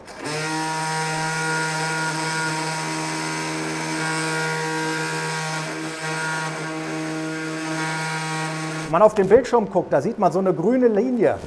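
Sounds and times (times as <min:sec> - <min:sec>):
robot-guided surgical bone saw cutting during knee surgery: 0:00.0 - 0:08.9
speech: 0:08.9 - 0:11.4.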